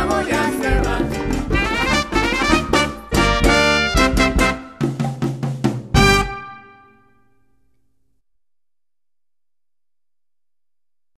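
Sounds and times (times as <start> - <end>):
conga drum: 0.0 - 6.4.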